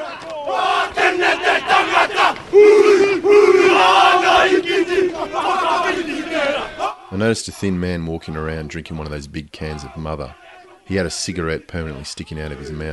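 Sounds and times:
group of Maori men performing a haka: 0:00.0 - 0:07.1, 0:09.7 - 0:10.9
speech: 0:07.2 - 0:12.9.

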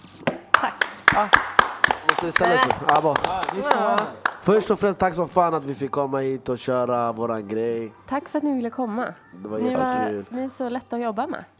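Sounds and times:
hand claps for a standing ovation: 0:00.5 - 0:04.7
speech: 0:00.6 - 0:01.5, 0:02.1 - 0:11.5.

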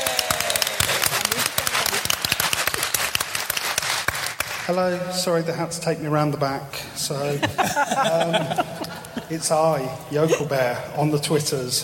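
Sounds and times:
audience applause: 0:00.0 - 0:04.8
speech: 0:04.7 - 0:08.7, 0:09.3 - 0:11.8
laughter: 0:07.1 - 0:10.8.

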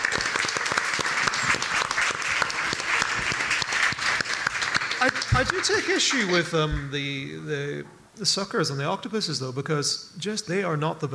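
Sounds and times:
audience applause: 0:00.0 - 0:06.8
speech: 0:05.0 - 0:11.1.

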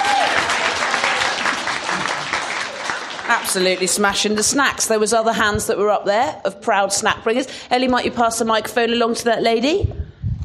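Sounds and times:
audience applause: 0:00.0 - 0:04.1
speech: 0:03.4 - 0:10.0.

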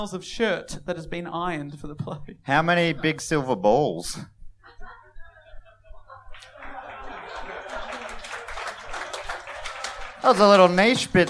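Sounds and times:
speech: 0:00.0 - 0:04.4, 0:10.2 - 0:11.2
laughter: 0:04.6 - 0:11.2
smattering of applause: 0:06.3 - 0:11.2.

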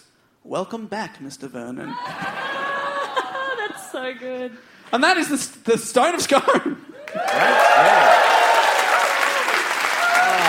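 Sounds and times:
speech: 0:00.4 - 0:02.4, 0:04.0 - 0:08.2
laughter: 0:01.9 - 0:04.2, 0:06.6 - 0:08.3
audience applause: 0:07.0 - 0:10.4
voices cheering: 0:07.0 - 0:10.4.

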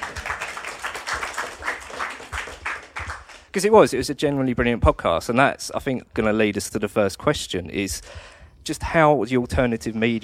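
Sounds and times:
audience applause: 0:00.0 - 0:03.5
speech: 0:03.6 - 0:10.2.

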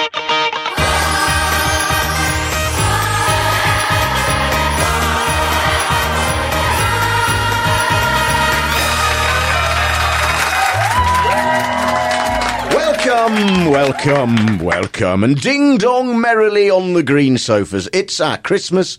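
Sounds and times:
festive Christmas arrangement of a TV theme tune: 0:00.7 - 0:13.6
speech: 0:13.3 - 0:18.9.

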